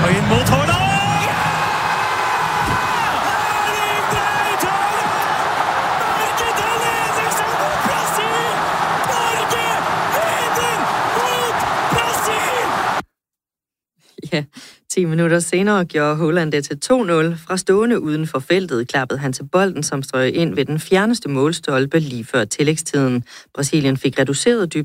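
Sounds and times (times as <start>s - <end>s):
large football crowd cheering at a goal: 0.0s - 13.0s
speech: 15.0s - 24.8s.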